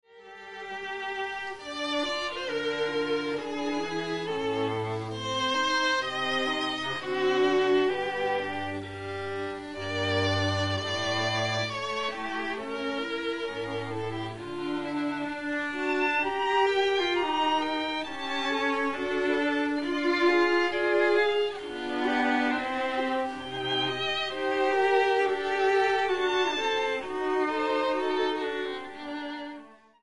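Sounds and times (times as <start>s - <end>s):
prelude in F minor: 0.2s - 29.8s.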